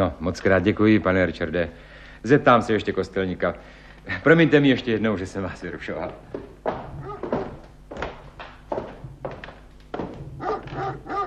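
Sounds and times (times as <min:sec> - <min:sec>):
speech: 0:00.0 - 0:06.8
dog barking: 0:07.0 - 0:07.6, 0:10.4 - 0:11.2.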